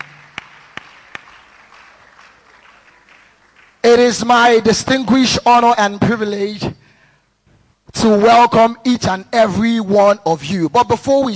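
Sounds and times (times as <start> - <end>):
audience clapping in unison: 0.0 - 4.3
low hum: 0.0 - 11.3
speech: 3.9 - 6.8, 8.0 - 11.3.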